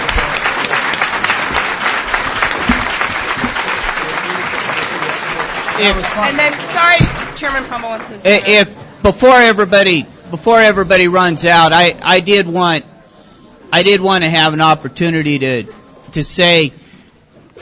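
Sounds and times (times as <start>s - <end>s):
crowd applause: 0.0s - 8.2s
speech: 5.8s - 12.9s, 13.7s - 16.8s.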